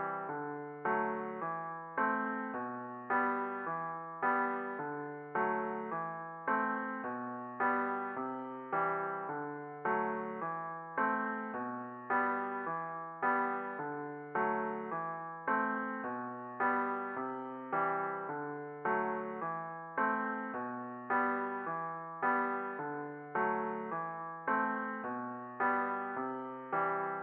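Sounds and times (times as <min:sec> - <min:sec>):
piano music for an action RPG game: 0:00.0 - 0:27.2.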